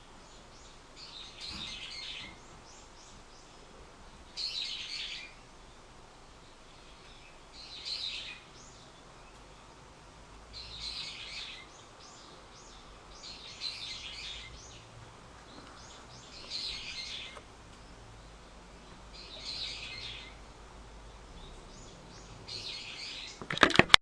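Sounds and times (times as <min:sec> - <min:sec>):
bird high jingling calls: 0:00.0 - 0:09.8, 0:10.5 - 0:20.5, 0:21.1 - 0:23.4
soft steady hiss: 0:00.0 - 0:23.9
sharp clattering knocks: 0:23.4 - 0:23.9.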